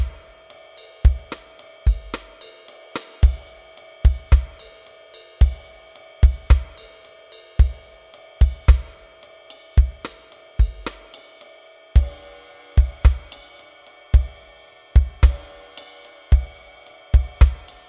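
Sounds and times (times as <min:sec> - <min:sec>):
jazz rock drums: 0:00.0 - 0:00.4, 0:01.0 - 0:04.8, 0:05.4 - 0:07.0, 0:07.6 - 0:09.1, 0:09.8 - 0:11.4, 0:12.0 - 0:13.6, 0:14.2 - 0:17.8.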